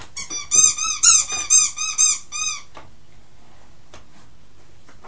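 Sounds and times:
pig noise from a sound book: 0:00.2 - 0:02.8.

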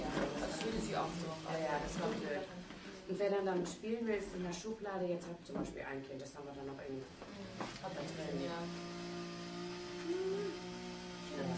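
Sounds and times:
speech: 0:00.6 - 0:08.9, 0:10.1 - 0:10.7, 0:11.4 - 0:11.5
construction crane motor droning: 0:07.2 - 0:11.5.

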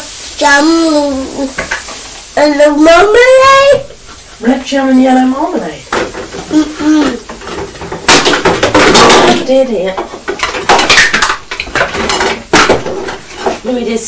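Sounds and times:
speech: 0:00.4 - 0:07.3, 0:09.5 - 0:10.1, 0:13.7 - 0:14.0
household objects falling and knocking together: 0:07.4 - 0:13.6.

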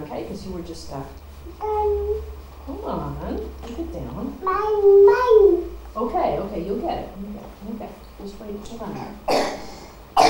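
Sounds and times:
speech: 0:00.3 - 0:09.7
child coughing with a nasty cough: 0:09.0 - 0:10.2.

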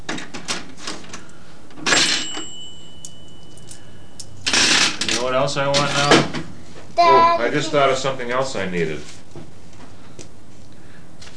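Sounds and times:
cash register drawer opening: 0:01.9 - 0:02.5, 0:04.5 - 0:06.3
cash register bell ringing: 0:02.0 - 0:04.5
speech: 0:05.2 - 0:06.4, 0:07.0 - 0:09.2.

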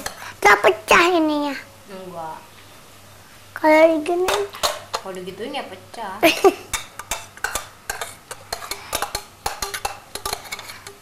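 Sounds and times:
speech: 0:00.5 - 0:02.5, 0:03.6 - 0:06.7
cooking pot clattering while vegetables cook: 0:06.7 - 0:10.9.

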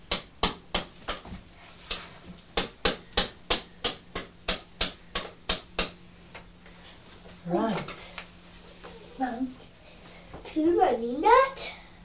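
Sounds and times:
gentle hammer tapping: 0:02.6 - 0:06.0
speech: 0:07.4 - 0:07.8, 0:10.6 - 0:11.5.

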